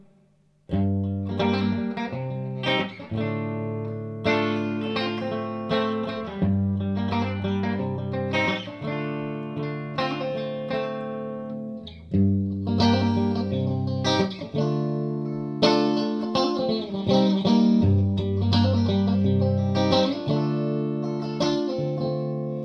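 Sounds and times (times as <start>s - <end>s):
vintage guitar in five pickup positions: 0.0s - 22.6s.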